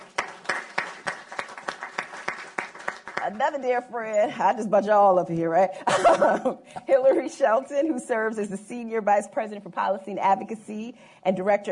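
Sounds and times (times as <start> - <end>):
audience applause: 0.0 - 3.4
speech: 3.2 - 11.7.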